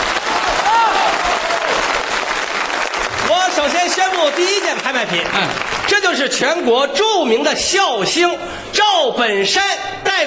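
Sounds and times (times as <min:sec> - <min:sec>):
audience applause: 0:00.0 - 0:06.2
speech: 0:03.6 - 0:10.2.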